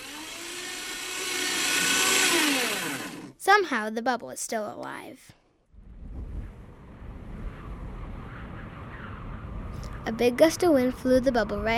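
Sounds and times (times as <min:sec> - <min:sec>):
paper shredder shredding paper: 0:00.0 - 0:03.4
speech: 0:03.5 - 0:05.4, 0:10.1 - 0:11.7.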